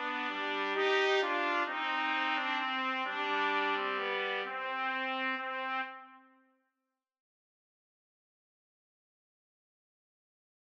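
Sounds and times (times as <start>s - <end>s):
siciliana trumpet duet: 0.0s - 6.5s.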